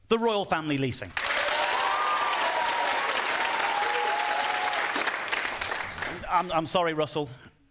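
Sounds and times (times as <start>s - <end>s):
speech: 0.1s - 1.3s, 6.3s - 7.5s
audience applause vote: 1.2s - 6.2s.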